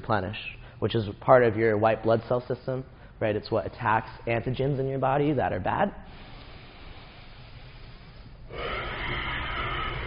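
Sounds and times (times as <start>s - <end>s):
speech: 0.1s - 6.3s
slow inhale through the right nostril during a breathing exercise: 6.0s - 10.0s.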